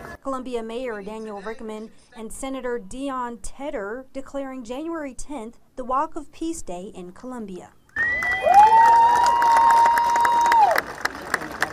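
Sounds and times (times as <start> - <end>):
speech: 0.2 - 7.8
large crowd cheering and applauding: 7.9 - 11.7
sustained whoop: 8.0 - 10.8.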